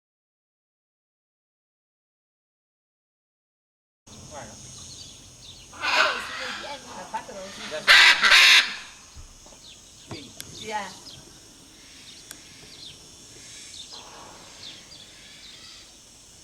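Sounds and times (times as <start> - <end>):
Great green macaw Ara ambigua harsh squawks and honking calls: 5.7 - 9.0, 11.8 - 15.9.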